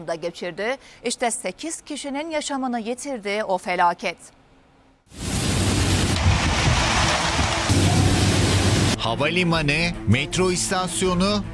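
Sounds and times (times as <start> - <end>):
speech: 0.0 - 4.4, 5.1 - 5.3, 9.0 - 11.5
heavy rain: 5.1 - 9.0.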